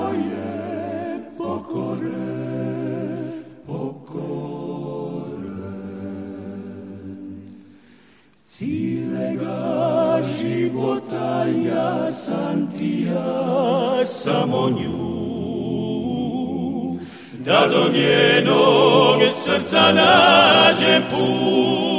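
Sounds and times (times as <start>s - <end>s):
a cappella singing: 0.0s - 21.9s.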